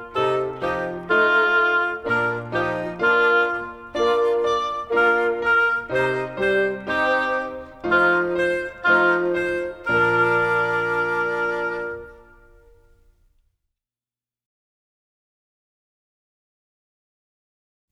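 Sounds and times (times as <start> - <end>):
solo music: 0.0 - 13.1.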